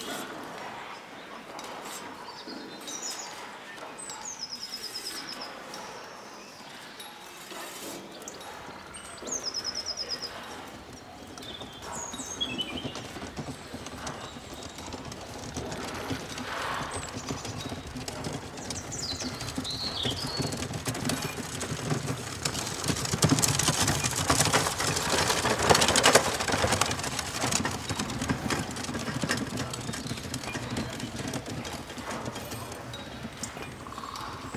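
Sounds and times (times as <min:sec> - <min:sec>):
town ambience: 0:07.7 - 0:34.5.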